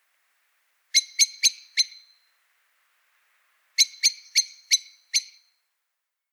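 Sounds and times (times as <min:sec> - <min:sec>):
common blackbird chinking calls: 0:00.9 - 0:02.2, 0:03.8 - 0:05.4.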